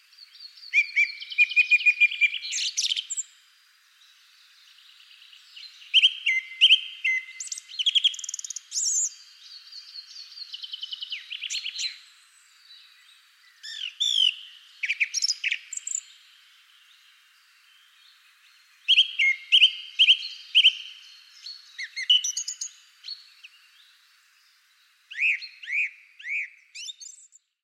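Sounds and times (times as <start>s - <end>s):
bird high piping calls with sharp chips and brief trills: 0.3s - 3.3s, 5.2s - 12.2s, 13.5s - 17.0s, 17.7s - 24.0s, 25.1s - 27.5s.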